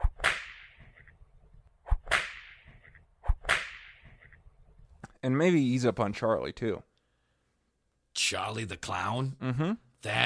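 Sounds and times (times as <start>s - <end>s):
whip cracks: 0.0s - 1.0s, 1.8s - 4.3s
speech: 5.2s - 6.9s, 8.3s - 10.2s.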